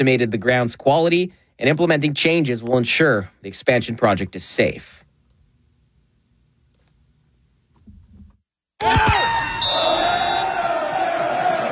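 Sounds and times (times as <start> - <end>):
speech: 0.0 - 5.0, 8.8 - 9.2
bar crowd cheering: 8.8 - 11.6.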